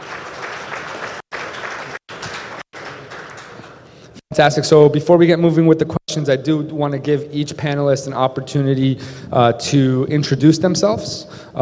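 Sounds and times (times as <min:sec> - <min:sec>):
audience applause: 0:00.0 - 0:03.9
speech: 0:04.4 - 0:11.6.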